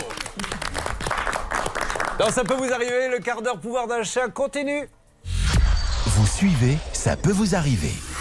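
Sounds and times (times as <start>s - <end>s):
studio audience applause: 0.0s - 3.5s
speech: 2.2s - 5.0s, 6.4s - 8.1s.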